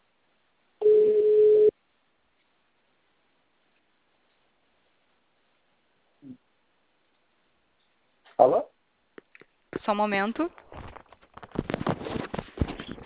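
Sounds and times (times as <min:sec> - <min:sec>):
telephone ringing tone: 0:00.8 - 0:01.7
speech: 0:08.4 - 0:08.7, 0:09.8 - 0:10.8.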